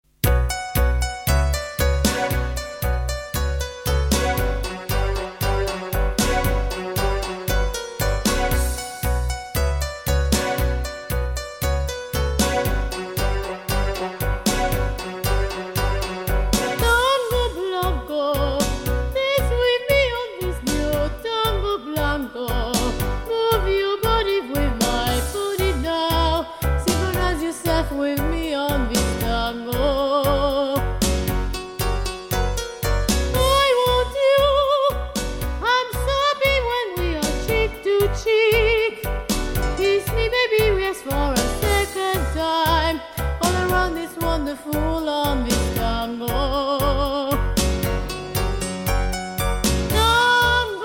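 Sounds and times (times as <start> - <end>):
tango music: 0.2 - 50.8
person singing: 15.2 - 31.0, 33.4 - 39.1, 39.8 - 47.5, 49.9 - 50.8.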